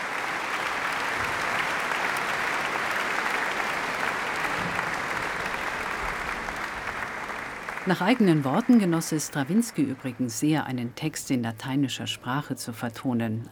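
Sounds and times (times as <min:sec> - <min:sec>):
large audience applause in a concert hall: 0:00.0 - 0:10.6
speech: 0:07.9 - 0:13.5.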